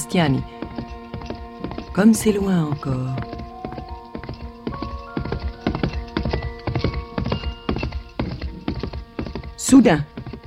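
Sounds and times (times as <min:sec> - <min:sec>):
hooves of a horse carrying a cavalry officer along a road: 0:00.0 - 0:10.4
speech: 0:00.1 - 0:00.6, 0:02.0 - 0:03.3, 0:09.7 - 0:10.1.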